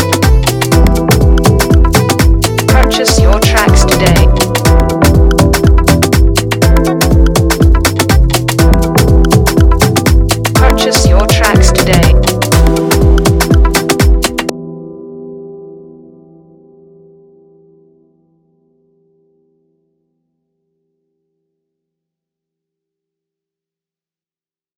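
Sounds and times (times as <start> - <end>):
afrobeat instrumental music: 0.0 - 14.6.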